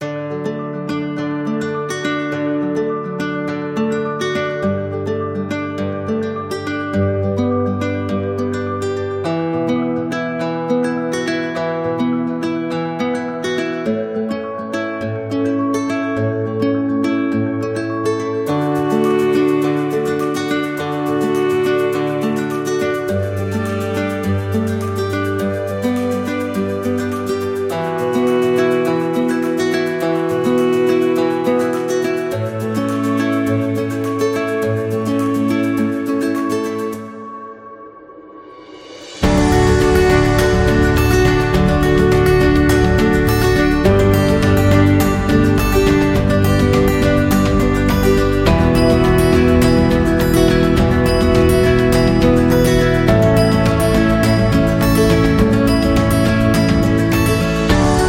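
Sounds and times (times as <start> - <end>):
inspiring acoustic guitar music: 0.0 - 58.0.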